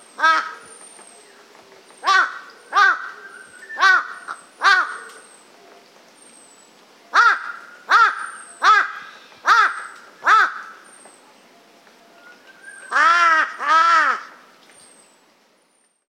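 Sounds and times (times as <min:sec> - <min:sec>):
Corvus corone calling: 0:00.2 - 0:00.7, 0:02.0 - 0:05.3, 0:07.1 - 0:10.9, 0:12.8 - 0:14.4.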